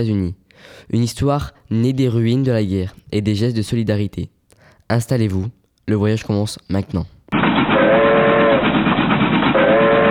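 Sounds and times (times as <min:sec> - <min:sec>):
speech: 0:00.0 - 0:07.2
train whistle blasts at Paris-Montparnasse station in 1949: 0:07.7 - 0:08.8, 0:09.5 - 0:10.0.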